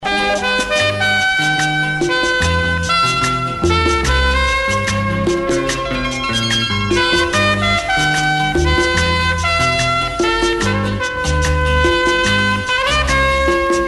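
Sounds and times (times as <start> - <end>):
ringtone: 0.0 - 13.8.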